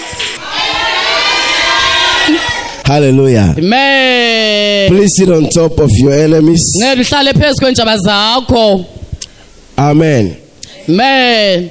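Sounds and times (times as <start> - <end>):
audience clapping: 0.0 - 1.0
audience shouting: 0.0 - 2.8
speech: 2.9 - 9.0, 9.8 - 11.6.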